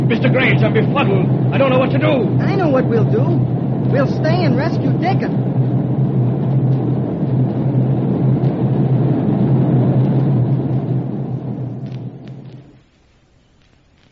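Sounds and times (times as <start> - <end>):
island volcano rumbling roar radio drama sound effect: 0.0 - 12.8
speech: 0.1 - 5.7.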